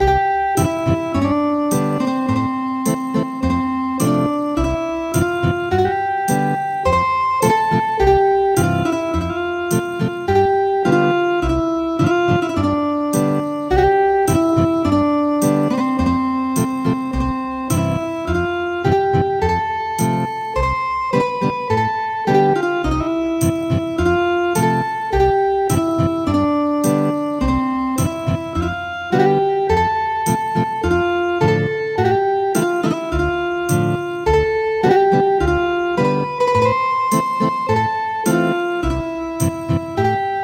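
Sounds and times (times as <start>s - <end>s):
ethnic guitar music: 0.0s - 40.4s.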